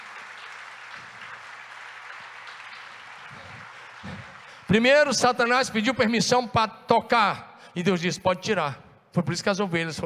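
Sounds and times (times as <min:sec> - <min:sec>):
audience applause: 0:00.0 - 0:04.8
speech: 0:04.0 - 0:10.0.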